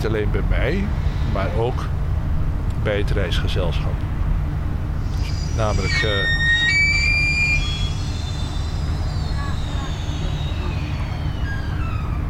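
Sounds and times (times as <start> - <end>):
speech: 0.0 - 2.0, 2.8 - 4.2, 5.6 - 6.4
ship squeaking as it scrapes the quay: 5.1 - 12.2.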